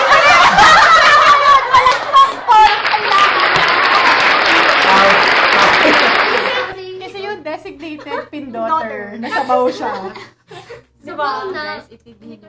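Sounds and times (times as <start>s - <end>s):
laughter: 0.0s - 8.5s, 9.1s - 10.9s
applause sound effect: 1.7s - 6.8s
speech: 9.5s - 10.3s, 11.1s - 12.4s.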